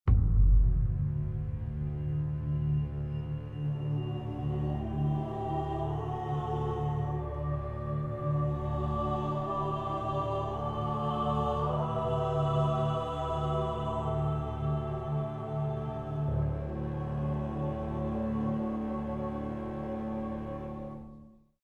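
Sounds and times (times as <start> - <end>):
music: 0.1 - 21.6.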